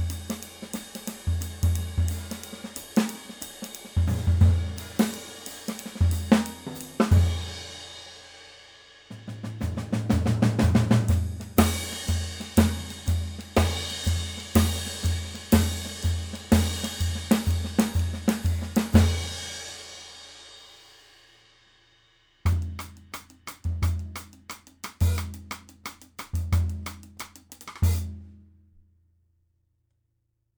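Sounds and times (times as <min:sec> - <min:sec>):
Ludwig Acrolite 5x14 snare drum: 0:00.0 - 0:08.0, 0:09.1 - 0:19.9, 0:22.5 - 0:28.1.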